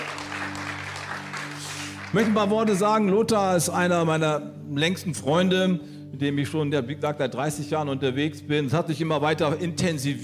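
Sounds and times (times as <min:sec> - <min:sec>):
audience applause: 0:00.0 - 0:02.8
speech: 0:02.1 - 0:10.2.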